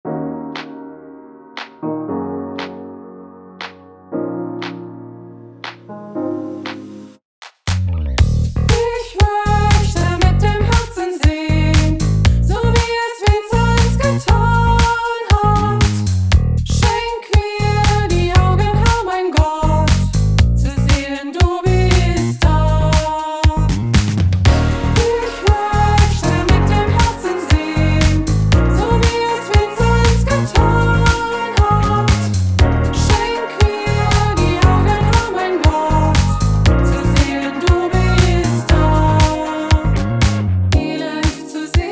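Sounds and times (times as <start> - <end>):
funk remix music: 7.7 - 41.9.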